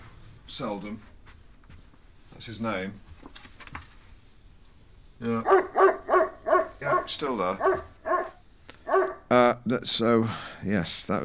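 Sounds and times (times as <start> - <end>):
speech: 0.5 - 1.1, 2.4 - 3.1, 5.2 - 6.0, 6.8 - 7.9, 9.3 - 11.2
dog barking: 5.4 - 9.3.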